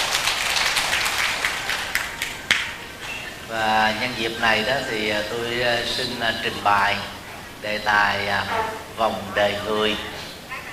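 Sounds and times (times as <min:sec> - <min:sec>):
audience applause: 0:00.0 - 0:06.9
speech: 0:03.5 - 0:10.1.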